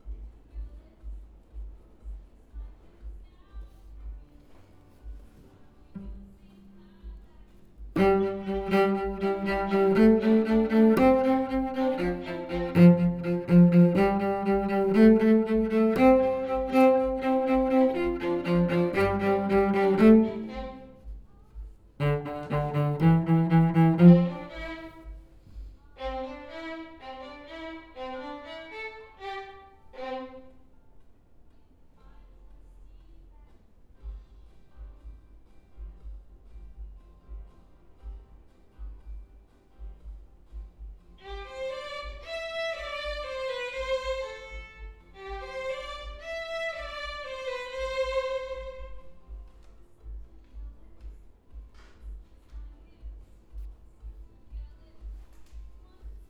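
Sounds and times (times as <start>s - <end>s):
cello: 4.1s - 31.0s, 40.8s - 56.2s.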